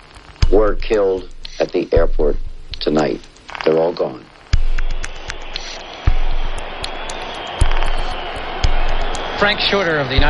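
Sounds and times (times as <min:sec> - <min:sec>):
speech: 0:00.6 - 0:04.3, 0:09.4 - 0:10.2
stadium crowd cheering marathon winner: 0:04.5 - 0:10.2.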